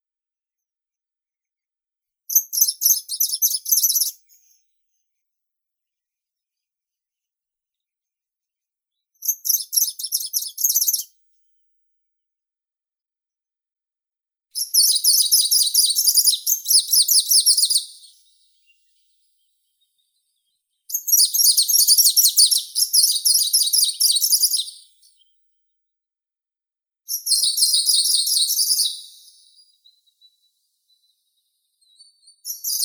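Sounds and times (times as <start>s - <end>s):
greenish warbler Phylloscopus trochiloides singing: 2.3s - 4.3s, 9.4s - 11.0s, 14.6s - 25.4s, 27.1s - 32.8s.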